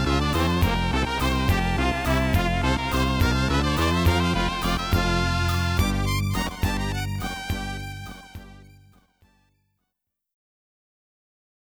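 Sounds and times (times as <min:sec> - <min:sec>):
waltz music: 0:00.0 - 0:08.8.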